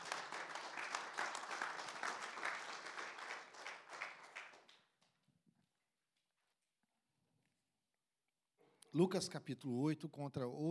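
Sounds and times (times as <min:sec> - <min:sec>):
audience applause: 0:00.0 - 0:04.8
speech: 0:08.9 - 0:10.6.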